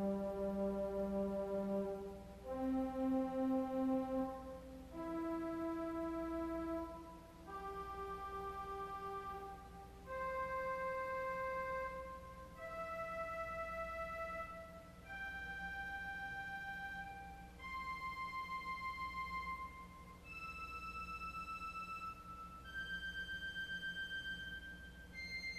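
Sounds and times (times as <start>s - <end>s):
organ arpeggio on viole celeste stop: 0.0s - 25.4s.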